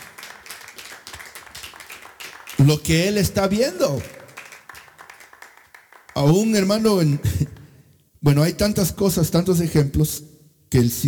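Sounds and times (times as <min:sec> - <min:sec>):
church congregation clapping: 0:00.0 - 0:07.7
speech: 0:02.6 - 0:04.2, 0:06.2 - 0:07.4, 0:08.2 - 0:11.0.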